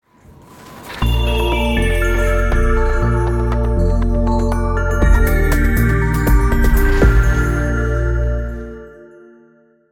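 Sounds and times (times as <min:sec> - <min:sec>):
skiing jingle: 0:01.0 - 0:09.9.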